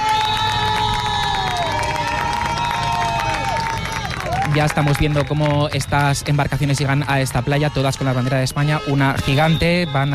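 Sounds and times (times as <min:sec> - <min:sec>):
crowd applauding and cheering outdoors: 0:00.0 - 0:10.1
speech: 0:04.6 - 0:10.1.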